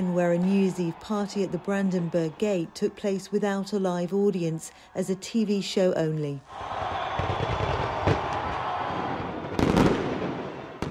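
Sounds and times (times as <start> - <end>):
speech: 0.2 - 7.0
New Year fireworks display in Bangkok: 6.8 - 10.9.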